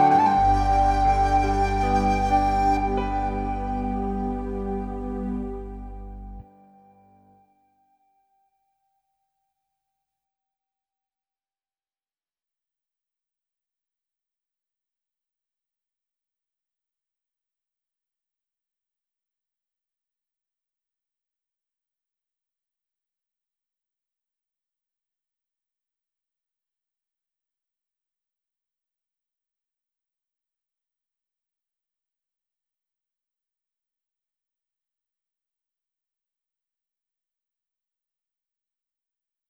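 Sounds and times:
calm cool-down exam music: 0.0s - 7.2s.

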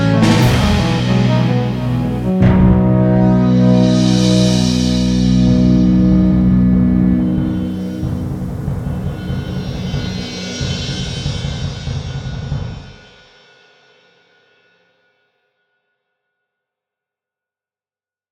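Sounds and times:
delay effect: 0.0s - 11.0s.

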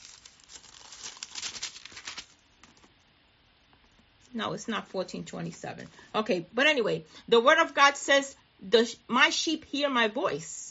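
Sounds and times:
thin Bible pages being flipped: 0.0s - 2.9s
speech: 4.4s - 10.6s.

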